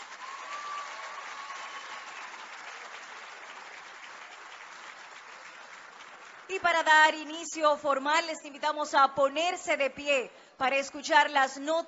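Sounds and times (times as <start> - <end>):
audience applause: 0.0 - 6.6
speech: 6.5 - 11.8.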